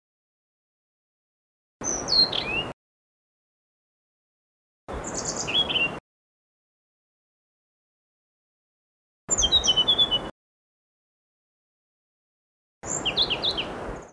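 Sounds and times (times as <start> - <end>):
blue-throated blue flycatcher song: 4.9 - 6.0, 9.3 - 10.3, 12.8 - 14.1.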